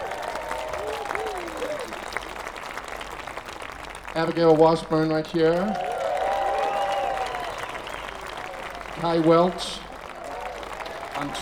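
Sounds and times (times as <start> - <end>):
whoops: 0.0 - 2.4, 5.7 - 9.0, 9.7 - 11.4
audience applause welcoming a musician: 0.0 - 11.4
speech: 4.2 - 5.9, 9.0 - 9.9, 11.2 - 11.4.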